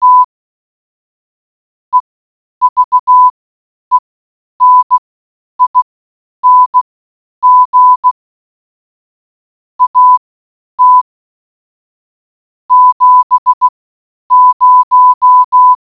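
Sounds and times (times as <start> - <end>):
morse code beeps: 0.0 - 0.3, 2.6 - 3.3, 4.6 - 5.0, 5.6 - 6.8, 7.4 - 8.2, 9.8 - 10.2, 10.8 - 11.1, 12.7 - 13.7, 14.3 - 15.8.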